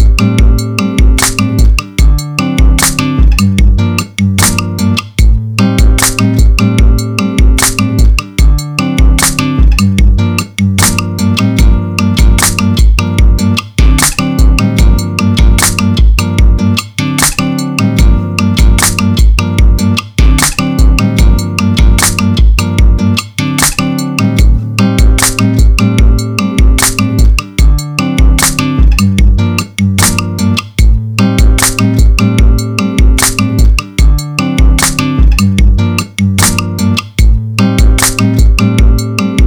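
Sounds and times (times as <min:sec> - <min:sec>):
smooth latin music: 0:00.0 - 0:39.4.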